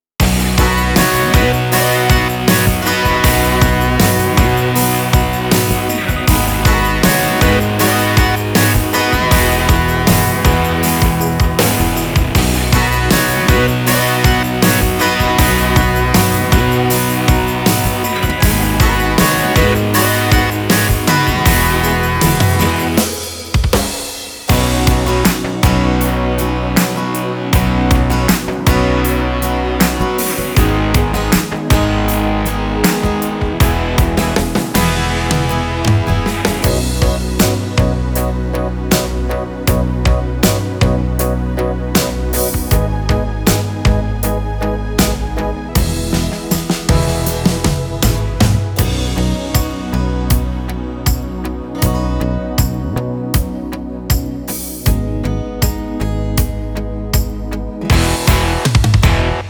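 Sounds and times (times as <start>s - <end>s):
slow rock on Yamaha Genos keyboard: 0.2s - 59.4s.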